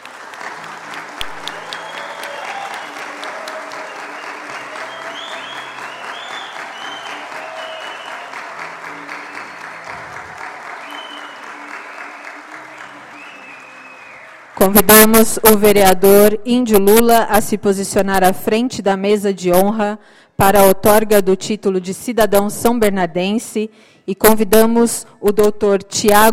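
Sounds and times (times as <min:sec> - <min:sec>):
audience applause: 0:00.0 - 0:14.7
speech: 0:14.6 - 0:26.3.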